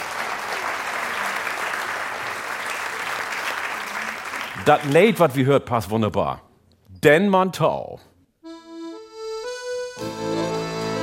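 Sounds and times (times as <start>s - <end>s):
audience applause for the band: 0.0s - 5.2s
speech: 4.7s - 6.4s, 7.0s - 8.1s.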